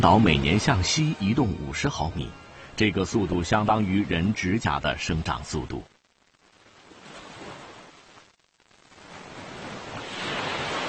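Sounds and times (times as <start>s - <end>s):
speech: 0.0s - 5.9s
ocean waves crashing against rocks: 9.2s - 10.8s.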